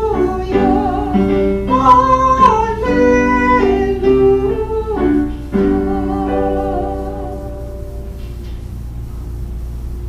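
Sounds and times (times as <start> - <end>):
gospel acclamation singing: 0.0 - 8.0.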